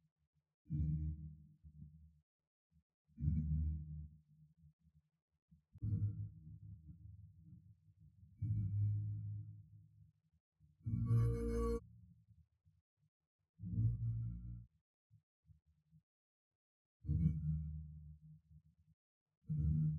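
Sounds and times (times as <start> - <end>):
bass: 0.7 - 2.0, 3.2 - 4.2, 5.8 - 7.6, 8.3 - 9.7, 10.8 - 11.8, 13.6 - 14.7, 17.0 - 18.3, 19.5 - 19.9.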